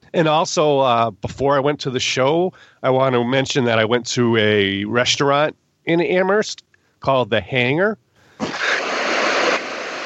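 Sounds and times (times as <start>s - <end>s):
speech: 0.1s - 8.7s
rushing water: 8.5s - 10.0s.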